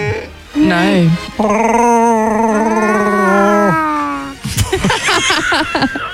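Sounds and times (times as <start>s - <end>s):
speech: 0.7s - 1.8s
person imitating a creature's growling roar: 1.4s - 4.4s
laughter: 4.5s - 6.1s.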